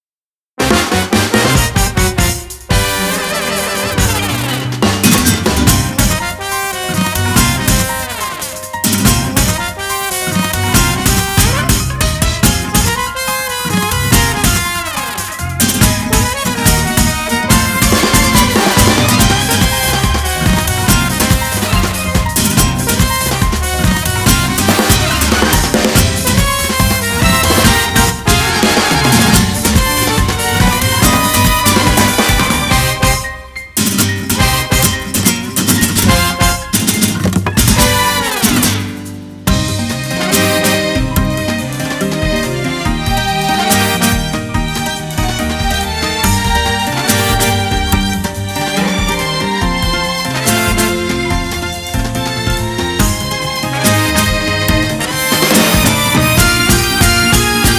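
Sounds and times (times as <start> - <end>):
instrumental music: 0.6 - 57.7.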